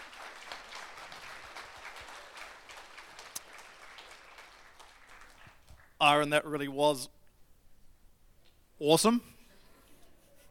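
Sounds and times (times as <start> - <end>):
audience applause: 0.0 - 6.0
speech: 6.0 - 7.2, 8.8 - 9.4.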